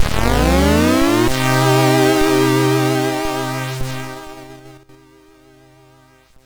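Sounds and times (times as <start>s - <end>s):
MOS6581R2 SID chip music: 0.0s - 3.5s.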